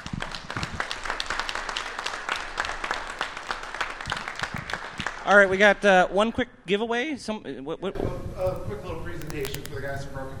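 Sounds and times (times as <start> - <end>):
applause: 0.0 - 5.6
speech: 5.3 - 10.3.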